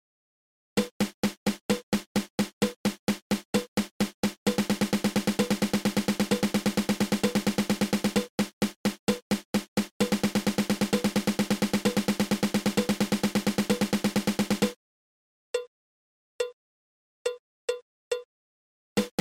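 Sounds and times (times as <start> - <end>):
drum double stroke roll: 0.8 - 14.8, 19.0 - 19.1.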